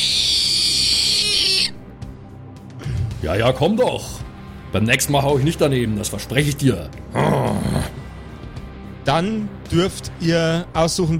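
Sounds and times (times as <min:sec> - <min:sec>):
creature screeching: 0:00.0 - 0:01.8
speech: 0:03.2 - 0:07.8, 0:09.1 - 0:11.1.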